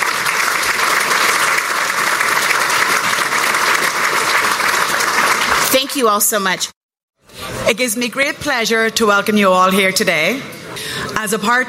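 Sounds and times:
round of applause: 0.0 - 6.2
speech: 5.7 - 6.7, 7.6 - 10.5, 11.2 - 11.6.

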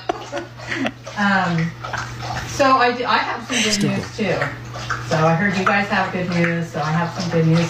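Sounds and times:
dog lapping water from a bowl: 0.1 - 7.6
speech: 0.3 - 1.9, 2.6 - 7.6.

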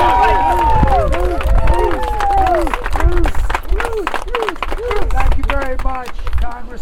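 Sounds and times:
crowd cheering and whooping to welcome the next governor: 0.0 - 5.4
crowd at a political event in Hamburg on the Lake Erie shore applauding: 0.0 - 6.7.

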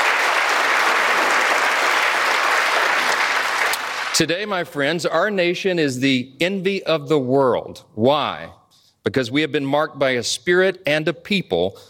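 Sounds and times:
audience applause: 0.0 - 4.2
speech: 4.2 - 11.8.

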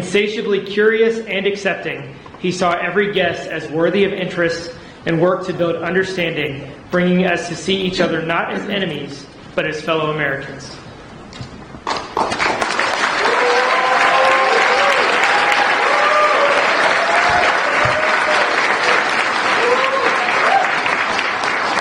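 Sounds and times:
speech: 0.0 - 10.8
large audience applause at a ceremony: 11.8 - 21.7
faint voices and cheers: 13.2 - 21.0.

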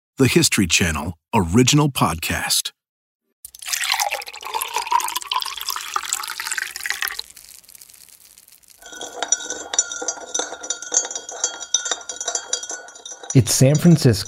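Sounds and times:
speech: 0.2 - 2.8, 13.3 - 14.2
drink of water and flavoring powder splashing: 3.5 - 9.4
stirring stick clinking against glass: 3.6 - 14.2.

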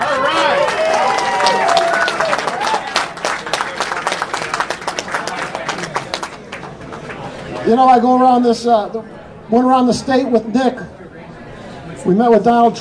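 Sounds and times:
crowd applause at a political gathering: 0.0 - 7.7
speech: 7.7 - 10.9, 12.0 - 12.7.

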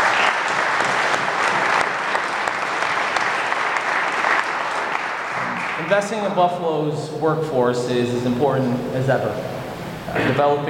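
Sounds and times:
audience applause: 0.0 - 6.1
speech: 5.9 - 9.5, 10.1 - 10.6.

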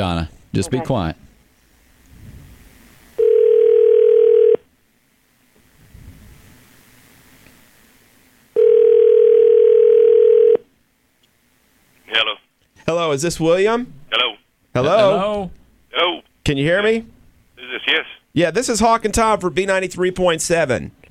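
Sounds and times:
speech: 0.0 - 1.3, 13.1 - 14.0, 14.8 - 21.0
telephone dial tone: 3.2 - 4.6, 8.6 - 10.6.

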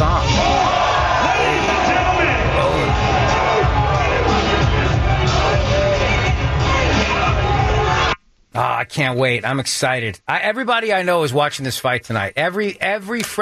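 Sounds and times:
large fight crowd roaring and cheering: 0.0 - 8.2
speech: 8.9 - 13.3.

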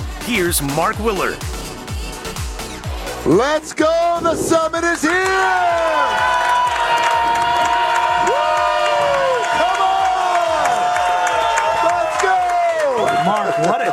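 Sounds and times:
speech: 0.3 - 1.6, 3.2 - 6.6, 13.2 - 13.9
crowd cheering and applauding: 3.8 - 13.9.

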